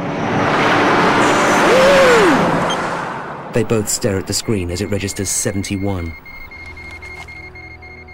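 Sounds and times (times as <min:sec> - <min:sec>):
speeding car driving past: 0:00.0 - 0:03.6
speech: 0:03.6 - 0:06.3.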